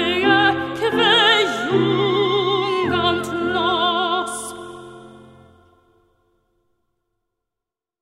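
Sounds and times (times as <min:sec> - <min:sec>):
soprano singing in Latin: 0:00.0 - 0:06.0.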